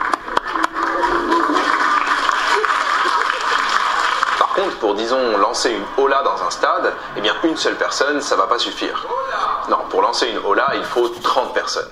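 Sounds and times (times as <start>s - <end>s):
crowd applauding: 0.0s - 7.0s
laughter: 0.1s - 9.6s
speech: 4.8s - 11.8s.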